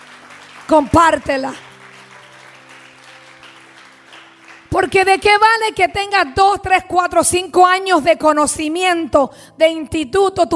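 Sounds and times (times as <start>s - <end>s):
crowd applauding: 0.0s - 5.4s
speech: 0.7s - 1.7s, 4.8s - 10.5s.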